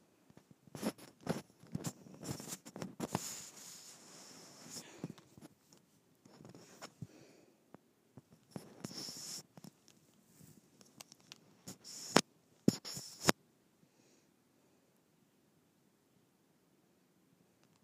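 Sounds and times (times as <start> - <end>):
microphone rubbed against skin: 0.7 - 7.1, 8.3 - 9.7, 10.3 - 13.4.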